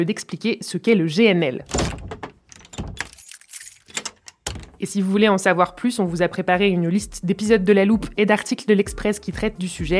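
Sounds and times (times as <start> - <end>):
speech: 0.0 - 2.0, 4.8 - 9.9
armoire door closing thump: 1.7 - 3.2, 4.0 - 4.8
armoire door rattling clatter while closing: 1.7 - 4.8.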